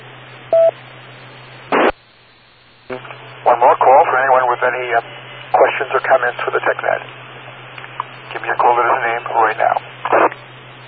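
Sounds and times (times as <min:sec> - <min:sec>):
crackling static: 0:00.0 - 0:10.8
electronic beep: 0:00.5 - 0:00.8
band-limited radio hiss with a low hum: 0:01.4 - 0:10.8
speech: 0:05.8 - 0:07.2, 0:08.5 - 0:09.8.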